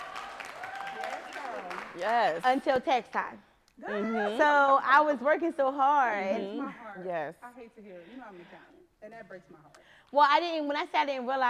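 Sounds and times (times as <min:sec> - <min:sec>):
clapping: 0:00.0 - 0:02.4
speech: 0:02.0 - 0:11.4.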